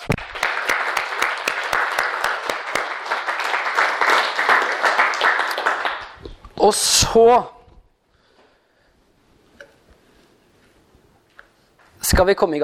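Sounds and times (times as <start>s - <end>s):
crowd applauding: 0.0s - 6.3s
speech: 6.6s - 7.6s, 12.1s - 12.6s.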